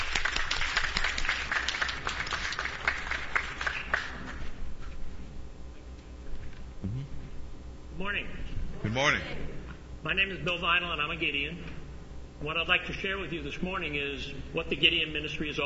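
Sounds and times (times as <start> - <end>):
audience applauding with hand claps: 0.0 - 4.5
speech: 8.1 - 9.4, 10.0 - 11.7, 12.4 - 15.6.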